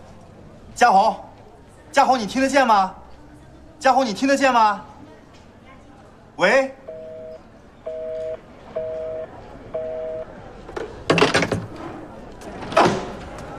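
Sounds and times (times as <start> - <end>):
speech: 0.8 - 1.3, 1.9 - 3.0, 3.8 - 4.9, 6.4 - 6.8
telephone disconnect tone beeps: 6.9 - 10.3.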